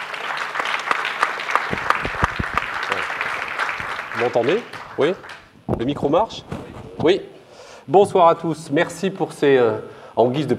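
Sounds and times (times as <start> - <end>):
audience applause: 0.0 - 5.5
speech: 4.2 - 7.3, 7.9 - 10.5.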